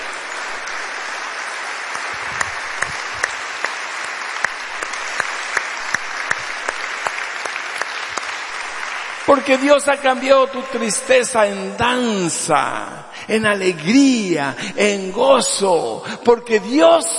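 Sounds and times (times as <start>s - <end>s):
audience applause: 0.0s - 10.9s
speech: 9.3s - 17.1s.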